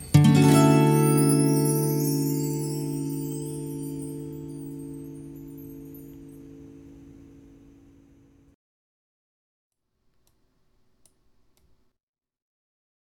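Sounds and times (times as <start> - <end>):
acoustic arrangement: 0.0 - 8.3.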